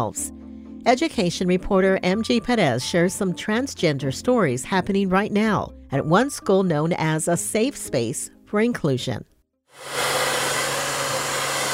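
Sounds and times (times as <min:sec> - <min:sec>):
speech: 0:00.0 - 0:10.1
blow dryers at a Paul Mitchell hair styling school in downtown San Diego: 0:09.8 - 0:11.7.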